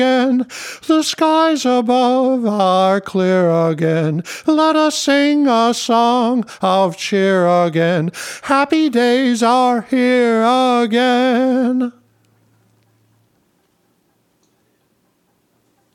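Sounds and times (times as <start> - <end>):
happy vocal through amp and compressor: 0.0 - 12.1.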